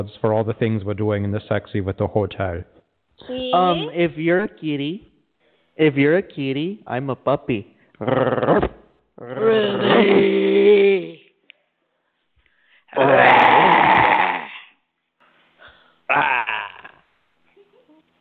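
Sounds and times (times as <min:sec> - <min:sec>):
speech: 0:00.0 - 0:05.1, 0:05.8 - 0:08.7
person imitating cow mooing: 0:09.2 - 0:11.2, 0:13.0 - 0:14.7, 0:16.1 - 0:17.0.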